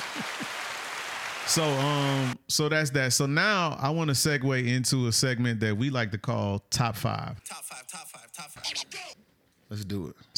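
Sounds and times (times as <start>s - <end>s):
clapping: 0.0s - 2.4s
speech: 1.5s - 8.9s, 9.7s - 10.3s.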